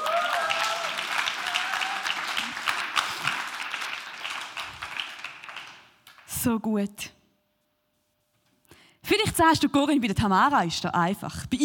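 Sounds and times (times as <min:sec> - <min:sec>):
applause: 0:00.0 - 0:06.5
speech: 0:06.4 - 0:07.2, 0:09.4 - 0:11.6.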